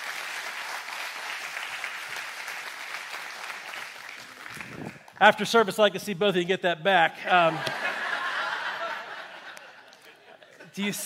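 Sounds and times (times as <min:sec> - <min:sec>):
audience applause: 0:00.0 - 0:05.2
speech: 0:05.2 - 0:07.8, 0:10.8 - 0:11.0
laughter: 0:07.2 - 0:11.0.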